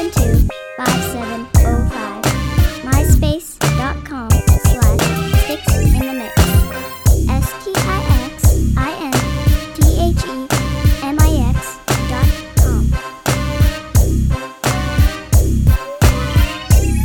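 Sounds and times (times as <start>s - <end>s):
music beat: 0.0s - 17.0s.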